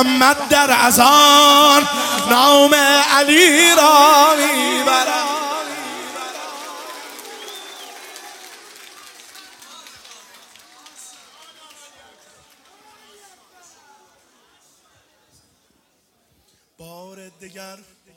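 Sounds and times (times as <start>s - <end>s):
speech: 0.0s - 5.4s
audience clapping at a religious poem recitation: 4.0s - 13.8s.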